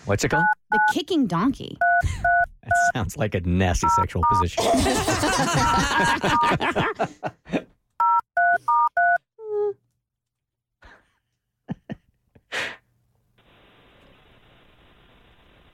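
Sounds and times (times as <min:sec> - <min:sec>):
speech: 0:00.1 - 0:07.6
telephone number being dialed, DTMF dual-tone beeps: 0:00.4 - 0:00.9, 0:01.8 - 0:02.9, 0:03.8 - 0:04.4, 0:08.0 - 0:09.2
breaths: 0:02.0 - 0:02.4, 0:10.8 - 0:11.3, 0:12.5 - 0:12.9
laughter: 0:04.6 - 0:07.7.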